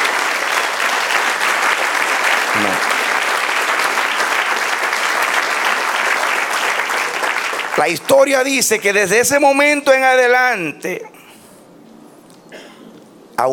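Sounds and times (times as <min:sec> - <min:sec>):
audience applause: 0:00.0 - 0:09.0
speech: 0:07.8 - 0:11.1.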